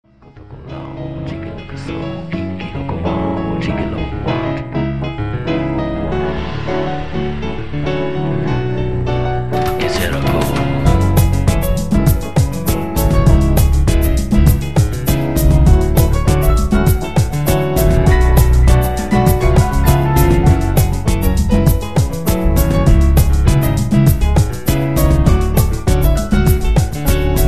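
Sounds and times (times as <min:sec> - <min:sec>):
groovy and funky cabana music: 0:00.4 - 0:27.4.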